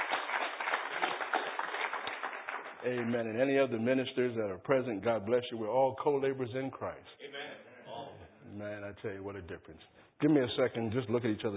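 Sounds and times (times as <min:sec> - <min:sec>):
church congregation clapping to welcome a speaker: 0:00.0 - 0:03.2
speech: 0:02.8 - 0:07.2, 0:08.6 - 0:11.5.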